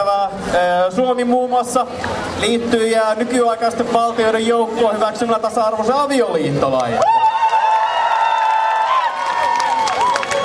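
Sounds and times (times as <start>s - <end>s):
speech: 0.0s - 7.2s
crowd applause and cheering: 6.8s - 10.4s.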